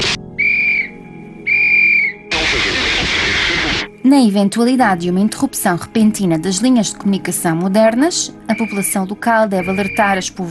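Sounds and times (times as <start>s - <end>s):
warning whistle blasts: 0.4s - 2.2s, 8.5s - 9.0s, 9.6s - 10.2s
broad hissing noise: 2.3s - 3.9s
speech: 4.1s - 10.4s.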